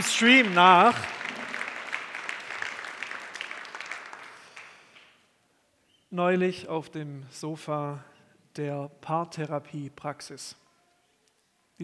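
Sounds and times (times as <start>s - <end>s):
speech: 0.0s - 1.2s, 6.1s - 10.6s
audience applause: 0.0s - 5.1s.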